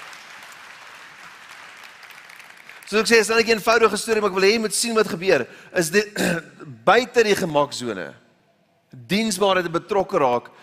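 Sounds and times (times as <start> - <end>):
audience applause: 0.0 - 3.2
speech: 2.9 - 8.2, 8.9 - 10.6.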